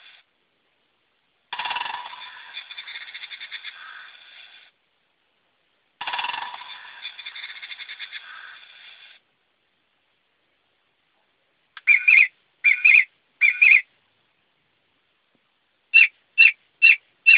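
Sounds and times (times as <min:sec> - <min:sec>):
English bird: 0:01.5 - 0:04.7, 0:06.0 - 0:09.2, 0:11.8 - 0:13.9, 0:15.9 - 0:17.3.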